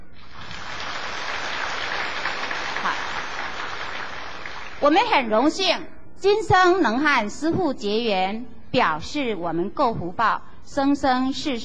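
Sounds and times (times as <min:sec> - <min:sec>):
warm applause: 0:00.2 - 0:04.8
speech: 0:04.8 - 0:11.6.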